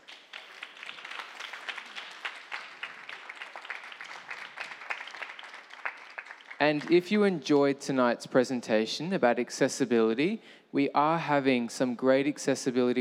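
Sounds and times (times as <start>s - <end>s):
audience applause: 0.0s - 6.8s
speech: 6.6s - 12.9s.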